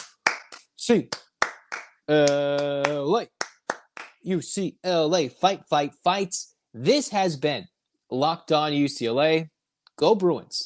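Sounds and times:
rhythmic eight-count group clapping: 0.0 - 4.2
speech: 0.8 - 1.2, 2.1 - 3.4, 4.2 - 10.6.

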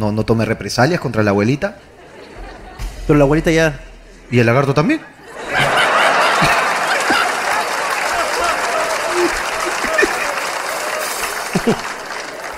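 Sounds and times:
speech: 0.0 - 1.9, 3.1 - 5.6, 11.6 - 11.9
laughter: 1.8 - 12.5
audience applause: 5.3 - 12.5.

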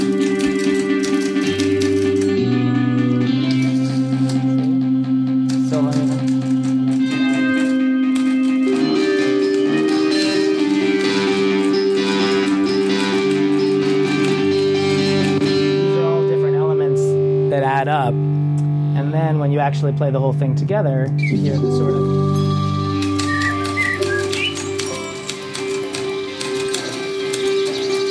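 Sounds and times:
typewriter clacking: 0.0 - 2.4, 5.4 - 15.5, 22.9 - 28.0
rock guitar: 0.0 - 19.3, 21.1 - 28.0
speech: 19.7 - 22.5.

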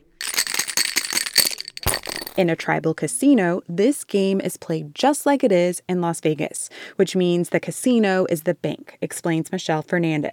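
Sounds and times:
dice rattling in a cup: 0.1 - 2.5
speech: 2.4 - 10.3.

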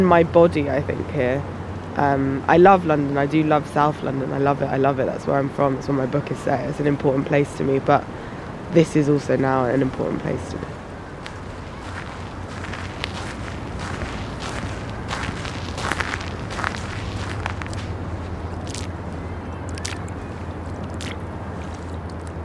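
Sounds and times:
speech: 0.0 - 10.8
footsteps stepping through water on beach: 11.2 - 19.0, 19.7 - 22.4.

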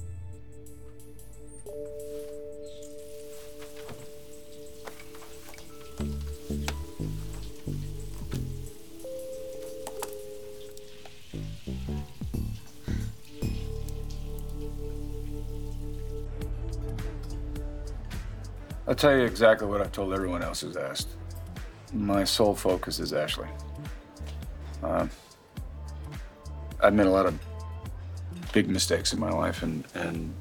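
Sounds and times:
shower water running: 1.7 - 25.7
speech: 19.0 - 21.2, 21.9 - 23.7, 26.9 - 27.5, 28.5 - 30.4.

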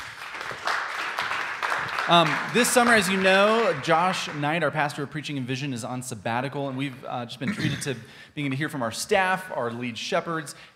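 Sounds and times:
audience applause: 0.0 - 4.4
speech: 2.1 - 10.7.

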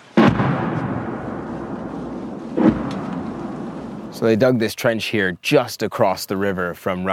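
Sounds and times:
heavy artillery blasts: 0.0 - 4.3
speech: 4.2 - 7.1.

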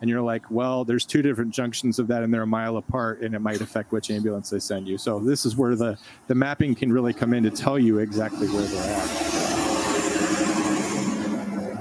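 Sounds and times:
speech: 0.0 - 9.3
car driving by: 7.4 - 11.7.

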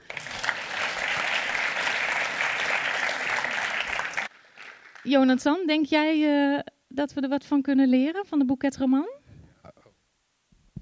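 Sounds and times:
audience applause: 0.0 - 5.1
speech: 5.0 - 9.2.

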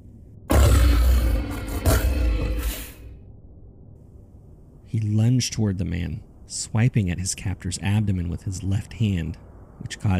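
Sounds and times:
beast growling: 0.5 - 3.1
speech: 4.9 - 10.1.

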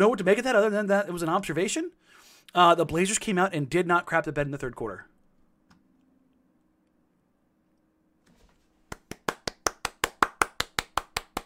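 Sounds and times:
speech: 0.0 - 5.1
crowd golf clap: 8.9 - 11.4.

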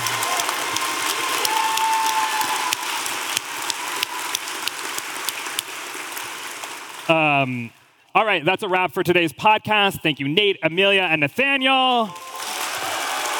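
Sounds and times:
audience applause: 0.0 - 7.6, 12.1 - 13.3
speech: 7.1 - 12.2.

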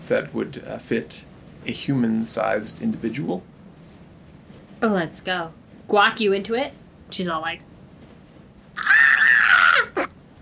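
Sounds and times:
speech: 0.1 - 3.5, 4.8 - 7.7
voice imitating an owl battle cry: 8.8 - 10.1.

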